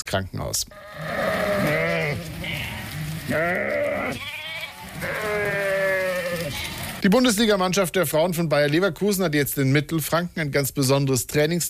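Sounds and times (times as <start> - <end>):
speech: 0.1 - 2.4, 3.3 - 4.4, 6.5 - 11.6
sheep bleating: 0.7 - 7.0
steady rustling hiss: 0.7 - 7.1.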